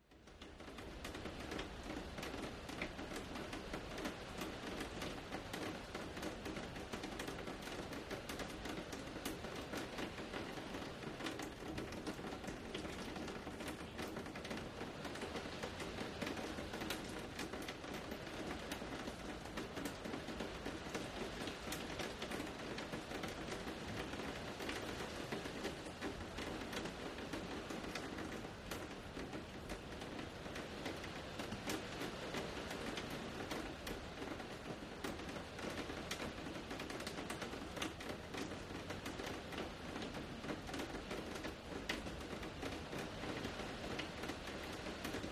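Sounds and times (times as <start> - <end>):
light rain outdoors: 0.0 - 45.3.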